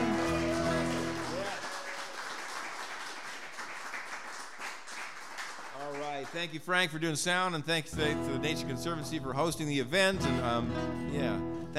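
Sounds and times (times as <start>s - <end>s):
audience applause: 0.0s - 6.5s
speech: 6.4s - 11.7s.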